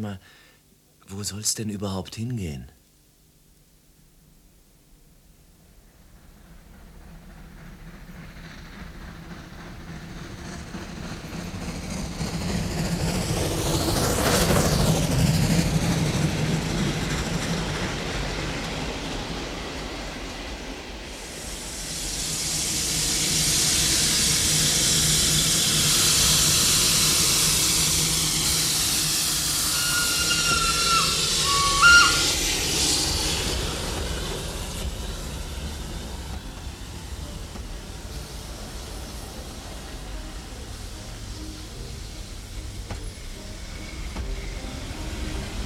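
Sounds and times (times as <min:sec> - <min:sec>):
speech: 0:00.0 - 0:00.4, 0:01.1 - 0:02.8
train rumbling along: 0:05.4 - 0:45.6
loud broad steam hiss: 0:05.7 - 0:45.6
short high train whistle: 0:29.4 - 0:32.7.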